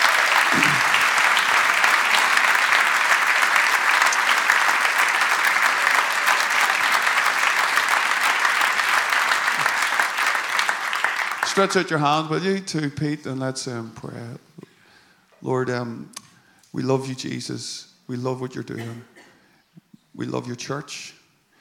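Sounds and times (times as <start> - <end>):
crowd applause: 0.0 - 12.1
speech: 11.6 - 14.5, 15.4 - 19.1, 20.2 - 21.2.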